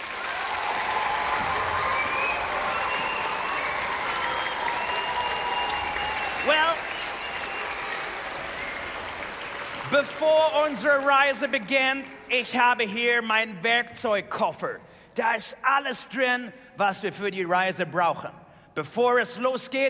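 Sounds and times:
audience applause in a hall: 0.0 - 12.3
cheers and whistles: 0.1 - 9.9
speech: 10.0 - 19.8.

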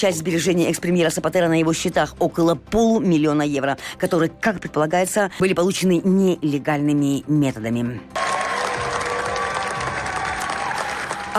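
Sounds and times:
speech: 0.0 - 8.3
standing ovation applause at film premiere: 8.2 - 11.3.

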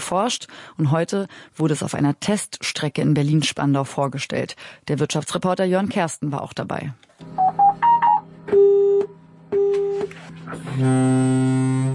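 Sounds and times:
speech: 0.1 - 7.4, 10.5 - 11.9
automated train busy-tone pulses: 7.4 - 10.1
automated train electronic beeps: 7.4 - 10.1.

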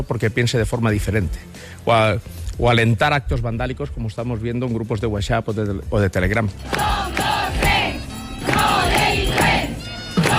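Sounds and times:
speech: 0.1 - 7.6
hundreds of teachers chanting protest slogans in unison: 6.6 - 10.3.

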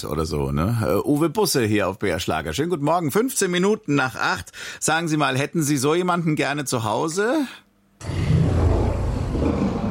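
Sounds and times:
speech: 0.0 - 8.4
Tyrannosaurus rex roar: 8.0 - 9.8.

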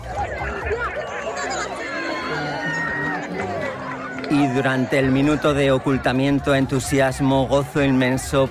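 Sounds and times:
crowd applauding: 0.0 - 7.0
laughter: 0.0 - 7.1
crowd cheering: 0.0 - 8.4
speech: 4.3 - 8.4.

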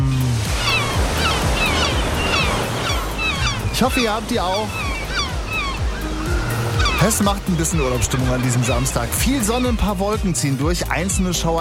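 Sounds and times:
ocean waves breaking on shore: 0.0 - 11.5
speech: 3.8 - 4.8, 7.0 - 11.5.

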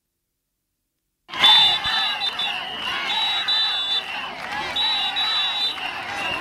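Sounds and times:
protesting crowd shouting and chanting outside a hospital: 1.3 - 6.3
shrill whistle blasts: 1.3 - 6.3.

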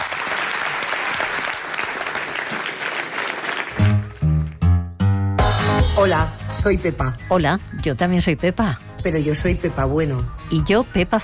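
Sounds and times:
audience applause: 0.0 - 4.6
speech: 6.0 - 11.2.

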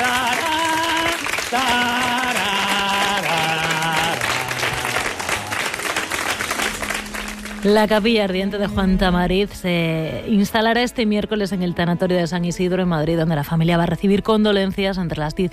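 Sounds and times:
audience applause: 0.0 - 7.7
speech: 7.6 - 15.5.

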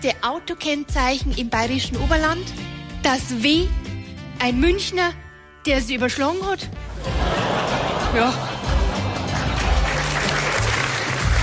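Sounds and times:
speech: 0.0 - 3.8, 4.4 - 6.9, 8.1 - 8.6
laughter: 7.0 - 11.0
audience member clapping: 9.1 - 11.4.

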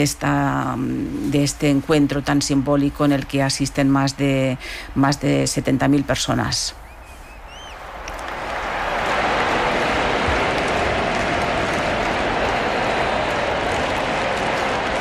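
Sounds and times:
speech: 0.0 - 6.8
crowd applauding: 7.5 - 15.0.

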